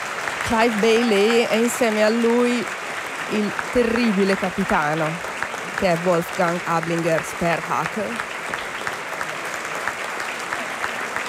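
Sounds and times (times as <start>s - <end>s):
theatre audience in the hall applauding the performers: 0.0s - 11.2s
speech: 0.4s - 8.3s.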